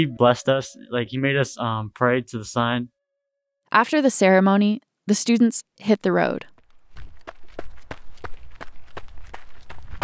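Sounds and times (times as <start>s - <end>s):
speech: 0.0s - 3.0s, 3.7s - 6.5s
running footsteps: 6.5s - 10.0s.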